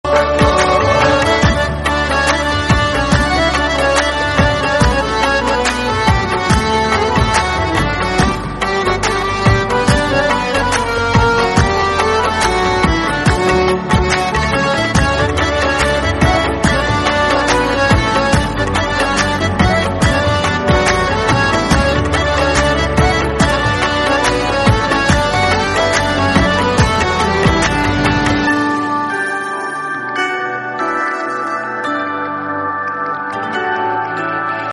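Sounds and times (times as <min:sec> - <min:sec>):
instrumental music: 0:00.0 - 0:34.7.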